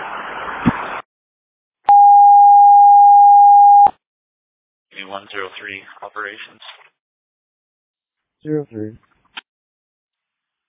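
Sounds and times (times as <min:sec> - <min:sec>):
airport all call alarm tone: 0:01.9 - 0:03.9
speech: 0:05.1 - 0:06.8, 0:08.4 - 0:09.1.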